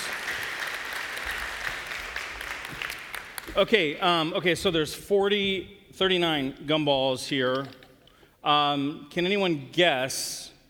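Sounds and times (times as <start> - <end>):
audience applause: 0.0 - 3.6
speech: 3.6 - 7.8, 8.4 - 10.5.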